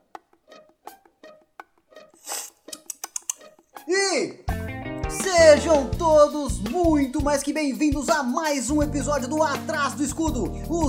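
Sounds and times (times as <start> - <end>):
person sipping water: 2.2 - 3.4
speech: 5.6 - 10.8.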